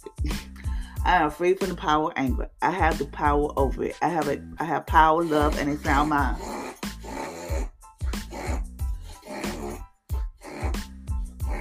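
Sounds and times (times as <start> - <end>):
speech: 1.0 - 6.6
dog snorting noises: 5.2 - 11.5.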